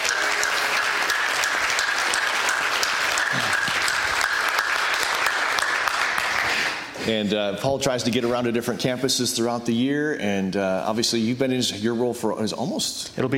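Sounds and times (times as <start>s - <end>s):
audience applause: 0.0s - 6.9s
speech: 7.1s - 13.3s.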